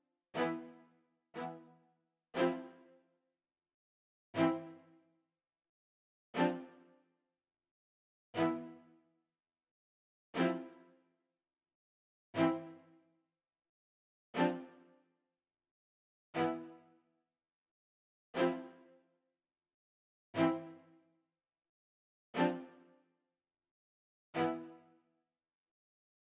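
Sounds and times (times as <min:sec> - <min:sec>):
string rhythm accompaniment: 0:00.4 - 0:01.8, 0:02.4 - 0:03.0, 0:04.4 - 0:05.0, 0:06.4 - 0:06.9, 0:08.4 - 0:08.9, 0:10.4 - 0:11.0, 0:12.4 - 0:13.0, 0:14.4 - 0:14.9, 0:16.4 - 0:17.0, 0:18.4 - 0:18.9, 0:20.4 - 0:21.0, 0:22.4 - 0:22.9, 0:24.4 - 0:25.0.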